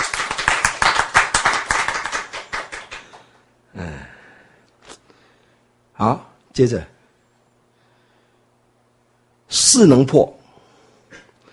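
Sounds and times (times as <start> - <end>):
audience clapping: 0.0 - 3.4
speech: 3.8 - 4.2, 6.0 - 6.9, 9.8 - 10.4.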